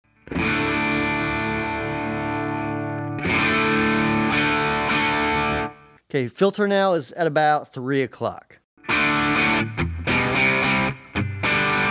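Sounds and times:
electric guitar through Rat distortion pedal with low gain: 0:00.1 - 0:06.0, 0:08.8 - 0:11.8
speech: 0:06.1 - 0:09.0.

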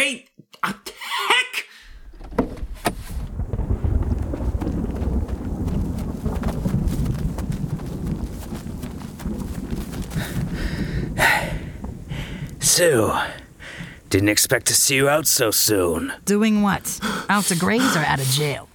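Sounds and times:
wind buffeting the microphone: 0:02.0 - 0:12.7
horse hooves clip-clopping across a field: 0:03.2 - 0:11.0
speech: 0:12.8 - 0:13.4, 0:14.1 - 0:18.7.

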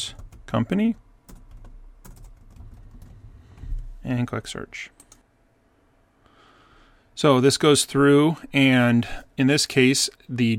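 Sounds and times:
speech: 0:00.0 - 0:01.0, 0:04.1 - 0:05.0, 0:07.2 - 0:10.5
computer keyboard typing a business name into a domain search box: 0:00.0 - 0:03.2.

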